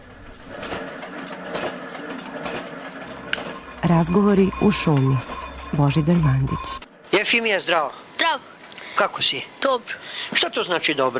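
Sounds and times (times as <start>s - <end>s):
printing press running: 0.0s - 7.4s
speech: 3.8s - 11.1s.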